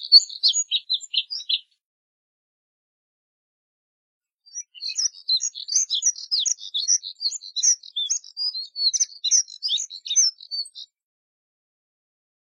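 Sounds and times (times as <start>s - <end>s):
Moussier's redstart twittering warble: 0.0s - 1.6s, 4.5s - 10.9s.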